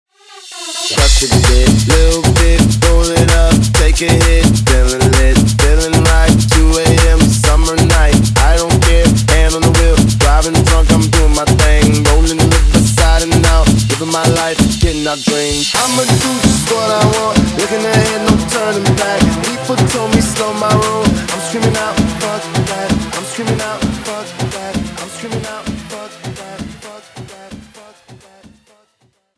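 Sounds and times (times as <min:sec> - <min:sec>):
intro outro music: 0:00.2 - 0:28.9.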